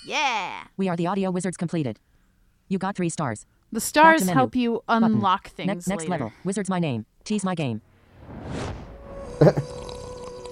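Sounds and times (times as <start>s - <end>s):
speech: 0.0s - 2.1s, 2.7s - 8.8s, 9.4s - 9.7s
person gulping tea: 9.4s - 10.5s.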